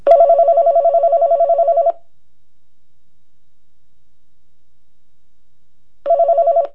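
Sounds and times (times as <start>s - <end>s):
telephone: 0.1s - 2.0s, 6.1s - 6.7s.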